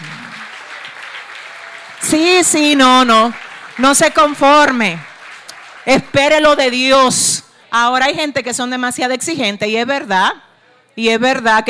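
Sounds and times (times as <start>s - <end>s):
audience applause: 0.0s - 6.6s
speech: 2.0s - 5.1s, 5.8s - 10.4s, 11.0s - 11.6s.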